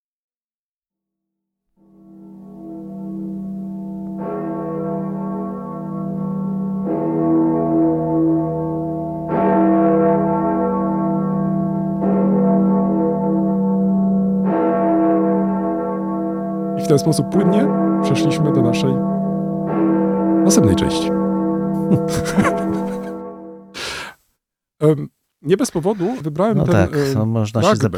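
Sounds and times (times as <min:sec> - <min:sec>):
freedom bells ringing in Berlin: 0:02.3 - 0:23.1
speech: 0:16.9 - 0:19.1, 0:20.4 - 0:23.0, 0:24.8 - 0:27.9
laughter: 0:21.8 - 0:23.2, 0:25.6 - 0:27.8.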